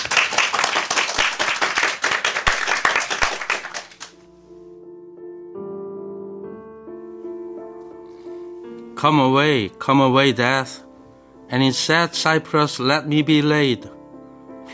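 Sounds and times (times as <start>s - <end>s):
audience applause: 0.0s - 4.1s
soft sustained piano chords: 0.0s - 14.7s
speech: 9.0s - 10.8s, 11.5s - 14.0s.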